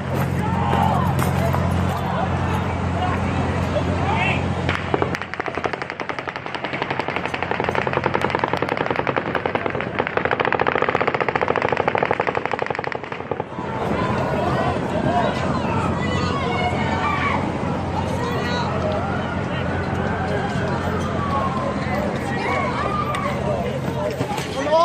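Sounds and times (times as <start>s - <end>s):
crowd noise with voices: 0.0s - 24.8s
rapid rifle fire from a 32nd-floor suite of the Mandalay Bay Hotel: 4.7s - 13.6s.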